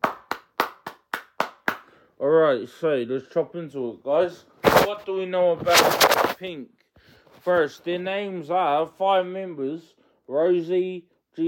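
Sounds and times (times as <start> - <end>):
hand claps: 0.0 - 2.0
speech: 2.2 - 6.8, 7.4 - 11.4.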